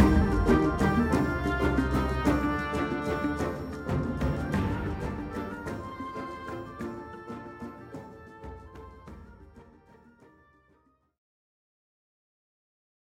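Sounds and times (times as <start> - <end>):
forest battle music: 0.0 - 9.9.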